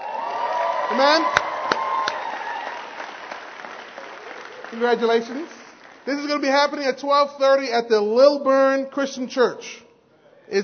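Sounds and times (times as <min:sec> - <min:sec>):
church congregation applauding a baptism announcement at Lilburn Christian Church: 0:00.0 - 0:07.1
speech: 0:00.9 - 0:01.4, 0:04.7 - 0:09.8, 0:10.5 - 0:10.6.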